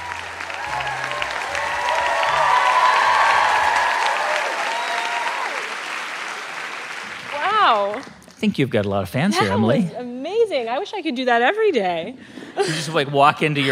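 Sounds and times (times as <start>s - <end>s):
live audience applause and cheering: 0.0s - 8.3s
speech: 7.7s - 10.1s, 10.7s - 13.6s.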